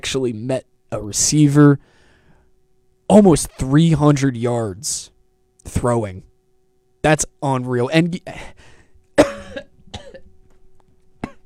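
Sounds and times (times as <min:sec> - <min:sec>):
speech: 0:00.0 - 0:02.0, 0:03.1 - 0:06.3, 0:07.0 - 0:08.7
person coughing from choking on own spit: 0:09.2 - 0:10.3, 0:11.2 - 0:11.4.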